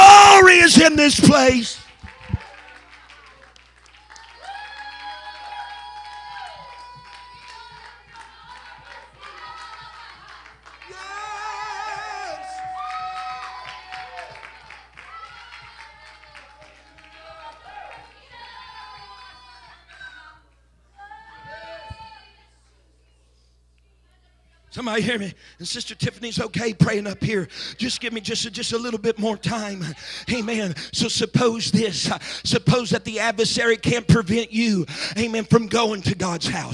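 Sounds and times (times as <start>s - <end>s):
audience hand clapping: 0.5s - 18.5s
speech: 0.9s - 1.8s, 24.8s - 36.7s.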